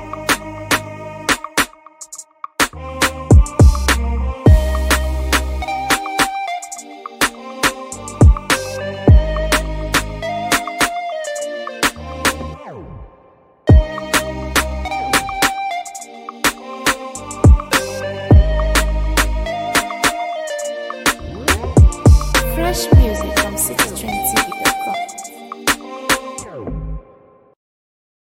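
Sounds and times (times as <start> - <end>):
instrumental music: 3.3 - 12.6, 13.7 - 26.7.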